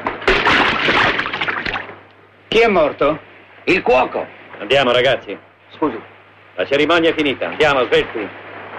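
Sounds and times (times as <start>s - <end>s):
body lowered into the sea at a burial splashing: 0.3s - 2.0s
water sloshing and churning: 0.3s - 2.0s
speech: 2.6s - 8.4s.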